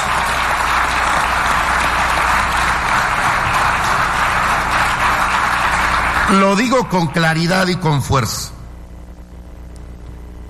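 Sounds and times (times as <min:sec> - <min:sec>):
crowd applause: 0:00.0 - 0:07.8
speech: 0:06.3 - 0:08.6.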